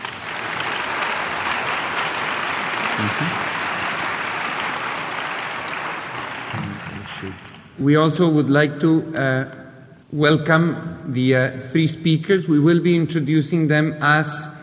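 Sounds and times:
audience applause for the organizers: 0:00.0 - 0:07.8
speech: 0:03.0 - 0:03.5, 0:07.2 - 0:14.5.

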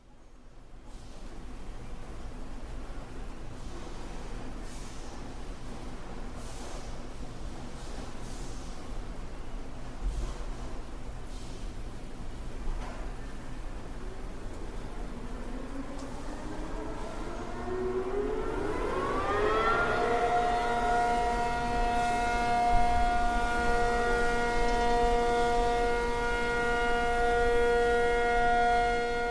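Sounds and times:
steady low hum: 0:00.0 - 0:29.2
air raid drill civil defense siren wailing: 0:13.6 - 0:29.2.

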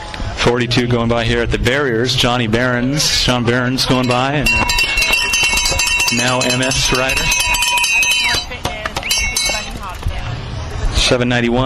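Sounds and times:
busy outdoor noise: 0:00.0 - 0:11.6
speech: 0:00.4 - 0:04.9, 0:06.1 - 0:07.6, 0:11.1 - 0:11.6
children ringing bells at cyclocross race barriers: 0:03.2 - 0:10.0.

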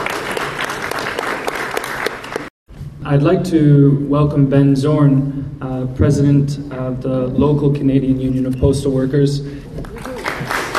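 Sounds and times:
audience applause at the Winnipeg People's Social Forum: 0:00.0 - 0:02.5, 0:09.8 - 0:10.7
speech: 0:03.1 - 0:10.1.

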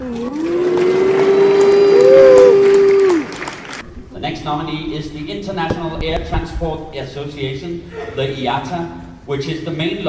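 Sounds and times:
audience cheering: 0:00.0 - 0:03.8
speech: 0:04.5 - 0:10.0.

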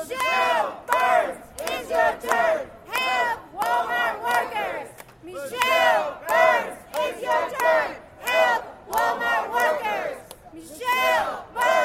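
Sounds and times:
protesters chanting outside an apartment building: 0:00.0 - 0:11.8.

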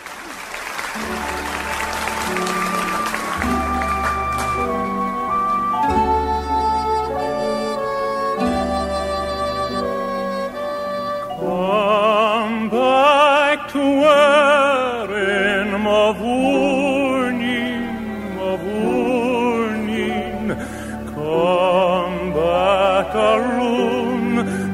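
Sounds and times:
audience applause on live recording: 0:00.0 - 0:06.6
orchestral music: 0:00.0 - 0:24.7.

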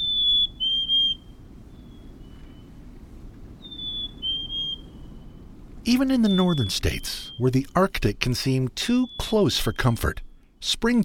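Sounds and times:
black-capped chickadee two-note whistled song: 0:00.0 - 0:02.7, 0:03.6 - 0:05.4, 0:06.0 - 0:07.6, 0:08.8 - 0:10.2
speech: 0:05.8 - 0:11.0.

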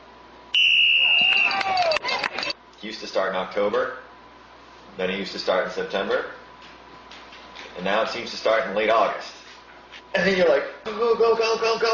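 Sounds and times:
whistle blowing: 0:00.5 - 0:02.0
speech: 0:02.8 - 0:04.1, 0:05.0 - 0:06.4, 0:07.8 - 0:09.4, 0:10.1 - 0:11.9.

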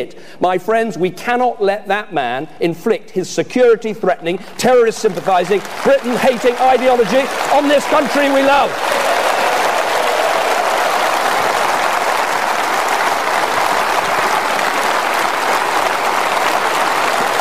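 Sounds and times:
speech: 0:00.0 - 0:09.2
rapturous conference audience applause for David Cameron: 0:05.0 - 0:17.3.

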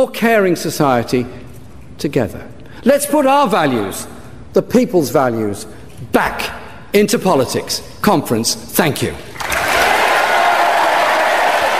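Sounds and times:
speech: 0:00.0 - 0:01.4, 0:02.0 - 0:09.6
conference audience standing ovation for Jeremy Corbyn: 0:09.4 - 0:11.7.

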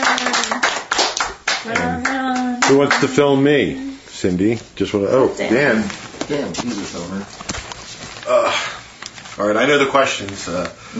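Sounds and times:
applause from a group of people: 0:00.0 - 0:03.2
speech: 0:02.7 - 0:07.5, 0:08.3 - 0:08.7, 0:09.4 - 0:10.9.

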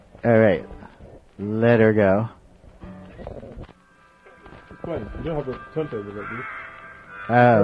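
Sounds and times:
speech: 0:00.2 - 0:00.7, 0:01.4 - 0:02.4, 0:04.9 - 0:06.6, 0:07.3 - 0:07.6
porpoise-like squeaky warbling calls: 0:03.1 - 0:07.6
thin sustained tone: 0:03.8 - 0:07.6.

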